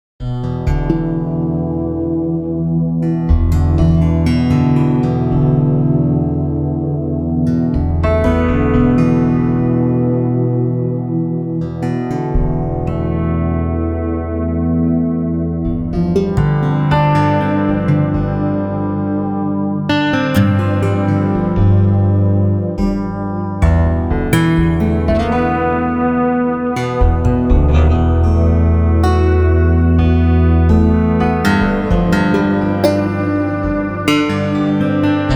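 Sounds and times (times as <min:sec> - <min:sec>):
guitars: 0:00.2 - 0:35.3.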